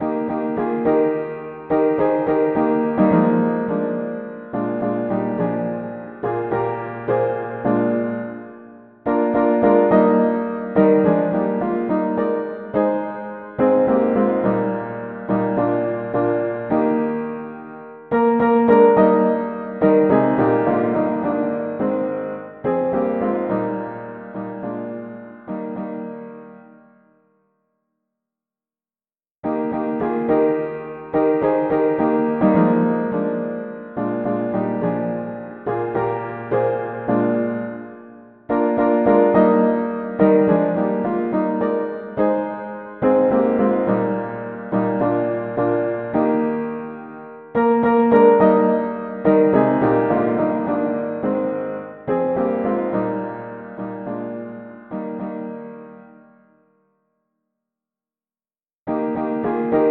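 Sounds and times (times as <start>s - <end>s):
mono piano: 0.0s - 27.8s, 29.4s - 57.2s, 58.9s - 59.8s.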